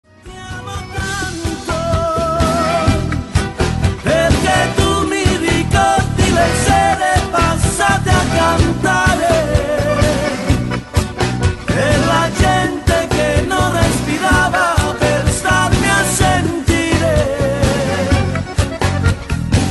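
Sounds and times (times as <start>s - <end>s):
guitar playing: 0.0s - 19.6s.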